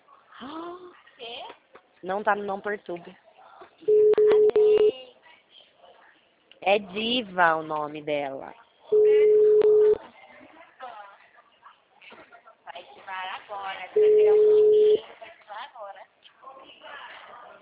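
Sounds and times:
speech: 0.4s - 3.2s, 6.6s - 8.6s
telephone call tones: 3.9s - 4.9s, 9.0s - 10.0s, 14.0s - 15.0s.

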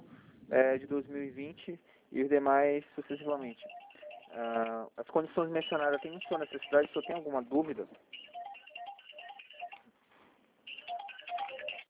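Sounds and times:
speech: 0.5s - 8.3s
telephone ringing with an electronic ringtone: 3.1s - 4.8s, 5.4s - 9.8s, 10.7s - 11.8s.

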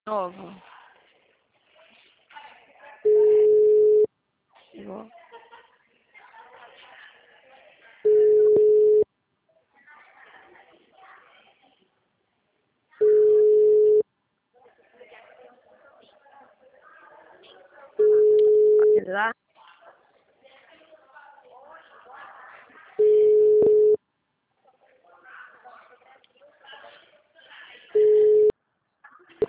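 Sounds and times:
speech: 0.1s - 0.7s, 4.8s - 5.2s, 19.1s - 19.4s
telephone ringing tone of an unanswered call: 3.1s - 4.1s, 8.1s - 9.0s, 13.0s - 14.0s, 18.0s - 19.0s, 23.0s - 24.0s, 28.0s - 28.5s.

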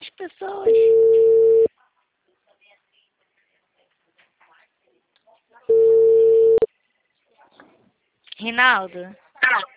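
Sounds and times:
telephone busy tone after a dropped call: 0.7s - 1.7s, 5.7s - 6.7s
speech: 8.4s - 9.7s.

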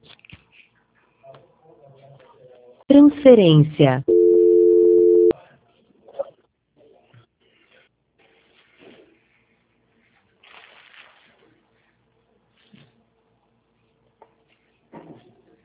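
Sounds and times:
speech: 3.0s - 4.1s
unanswered telephone call tone: 3.0s - 5.4s.

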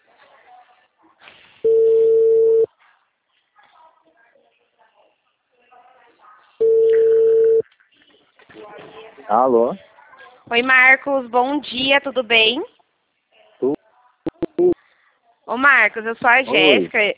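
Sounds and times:
faint noise: 0.0s - 17.1s
telephone ringback tone while a call connects: 1.6s - 2.7s, 6.6s - 7.6s
speech: 9.3s - 9.8s, 10.5s - 12.7s, 15.5s - 17.1s.

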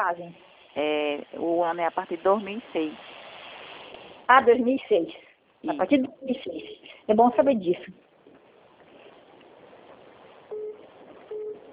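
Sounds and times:
speech: 0.0s - 3.2s, 4.3s - 8.0s
telephone ringing: 10.5s - 11.7s.

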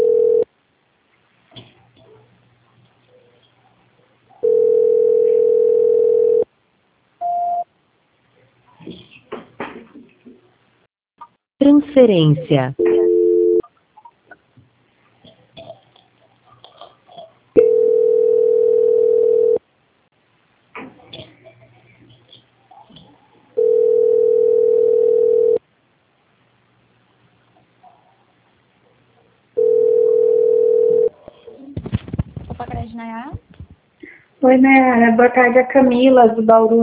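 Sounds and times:
telephone line tones after a dropped call: 0.0s - 0.5s, 4.4s - 6.5s, 12.8s - 13.6s, 17.6s - 19.6s, 23.6s - 25.6s, 29.6s - 31.1s
speech: 12.0s - 12.9s, 34.6s - 36.8s.

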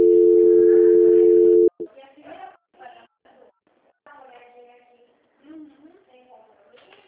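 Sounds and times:
telephone call transfer tone: 0.0s - 1.8s.

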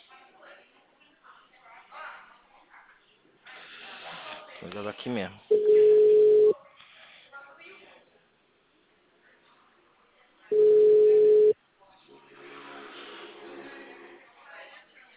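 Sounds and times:
speech: 4.6s - 5.6s
phone ringback tone beeps while calling someone: 5.5s - 6.5s, 10.5s - 11.6s.

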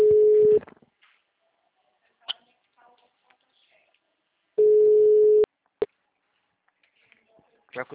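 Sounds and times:
telephone ringing on an outgoing call: 0.0s - 0.6s, 4.6s - 5.5s.

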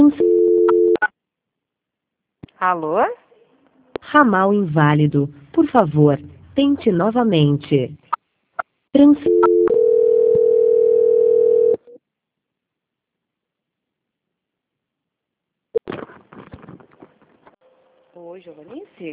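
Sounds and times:
telephone beeps and clicks after a dropped call: 0.0s - 1.1s, 9.3s - 11.9s
telephone dial tone after a dropped call: 0.2s - 1.0s, 9.3s - 12.0s
speech: 2.6s - 3.2s, 4.1s - 8.0s, 9.0s - 9.4s, 18.5s - 19.1s.

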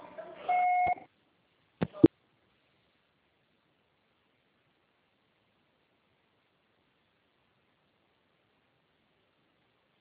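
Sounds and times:
voicemail recording electronic beep: 0.5s - 1.1s.

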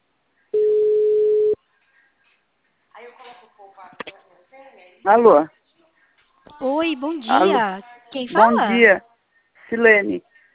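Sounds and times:
telephone tone while placing a call: 0.6s - 1.6s
speech: 5.0s - 5.6s, 6.6s - 9.1s, 9.7s - 10.3s.

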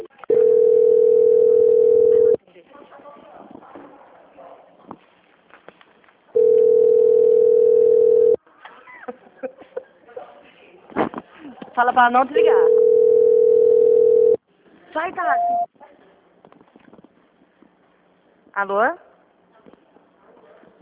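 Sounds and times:
faint telephone line noise: 0.0s - 2.4s, 6.3s - 8.4s, 12.4s - 14.4s
long telephone line tones during a call transfer: 0.3s - 2.4s, 6.4s - 8.4s, 12.4s - 14.4s, 15.4s - 15.7s
speech: 11.8s - 12.7s, 15.0s - 15.7s, 18.6s - 19.1s.

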